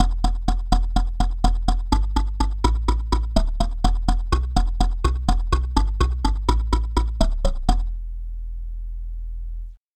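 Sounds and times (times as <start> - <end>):
kalimba: 0.0 - 7.9
bass: 0.0 - 9.8.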